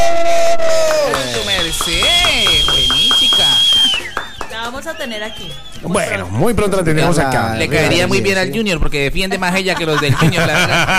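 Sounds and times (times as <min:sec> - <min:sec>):
applause: 0:00.0 - 0:05.8
cheering: 0:00.0 - 0:06.3
speech: 0:05.1 - 0:10.9
laughter: 0:09.4 - 0:10.9.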